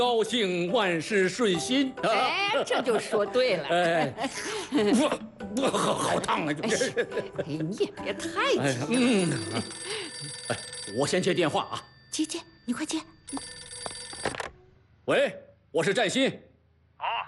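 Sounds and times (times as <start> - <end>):
speech: 0.0 - 13.6, 15.1 - 17.2
laughter: 2.0 - 8.0, 8.6 - 10.7
telephone ringing: 8.8 - 14.6.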